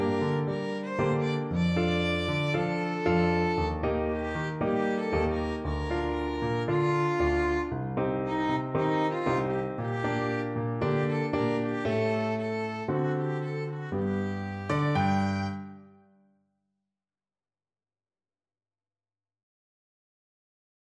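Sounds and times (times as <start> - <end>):
cello: 0.0 - 15.8
violin: 0.0 - 16.0.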